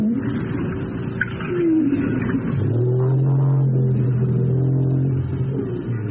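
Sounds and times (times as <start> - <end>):
underwater rumbling background: 0.0 - 6.0
North Atlantic right whale call: 1.2 - 5.9.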